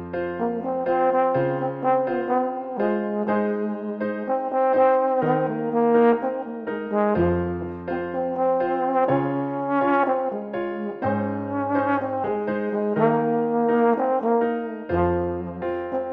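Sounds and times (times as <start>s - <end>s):
trombone: 0.3s - 16.1s.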